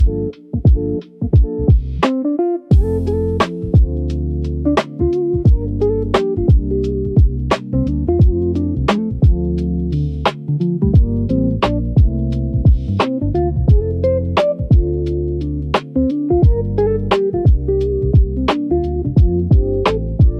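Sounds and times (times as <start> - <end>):
lo-fi jazz hop: 0.0 - 20.3.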